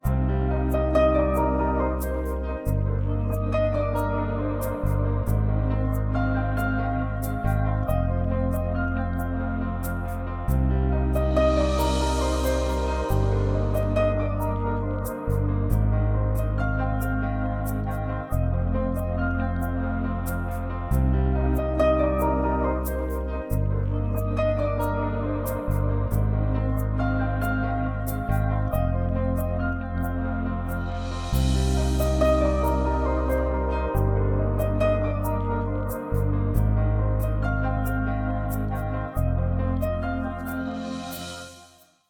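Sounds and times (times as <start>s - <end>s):
piano love theme: 0.0s - 41.9s.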